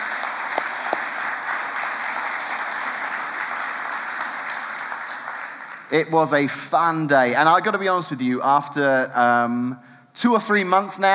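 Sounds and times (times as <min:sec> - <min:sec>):
audience applause: 0:00.0 - 0:06.0
speech: 0:05.9 - 0:11.1.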